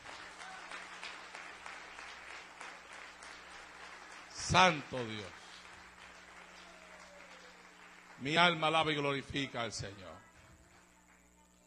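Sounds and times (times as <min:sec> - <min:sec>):
audience applause: 0:00.0 - 0:11.6
speech: 0:04.5 - 0:05.4, 0:08.2 - 0:10.3.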